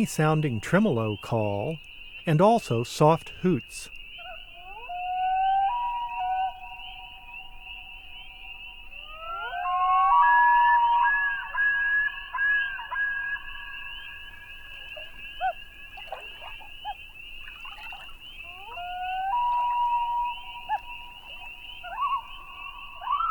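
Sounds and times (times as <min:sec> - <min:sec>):
common loon calling: 0:00.9 - 0:07.6, 0:09.0 - 0:23.2.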